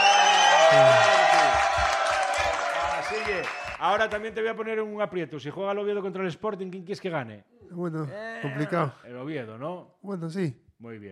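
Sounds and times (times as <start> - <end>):
crowd applauding: 0.0 - 4.3
speech: 0.7 - 1.2, 3.4 - 11.1.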